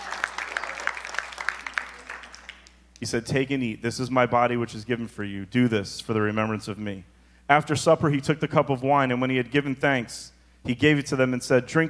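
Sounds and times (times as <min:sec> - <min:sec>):
audience applause: 0:00.0 - 0:02.8
speech: 0:03.0 - 0:11.8.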